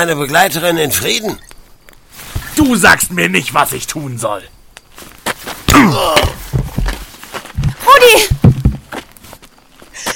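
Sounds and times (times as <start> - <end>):
speech: 0.0 - 1.5, 2.6 - 5.1, 5.7 - 6.4
light knocks and shuffles: 2.0 - 2.8, 4.8 - 10.1
pained vocal groan: 5.7 - 6.5
hard blow to the back of a man's head: 5.7 - 7.0, 7.6 - 9.0.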